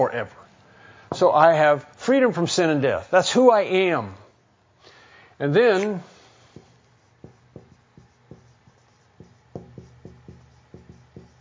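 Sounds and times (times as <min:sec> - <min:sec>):
speech: 0:00.0 - 0:00.4, 0:01.1 - 0:04.2, 0:05.4 - 0:06.1
pen scratching while handwriting: 0:06.6 - 0:11.3.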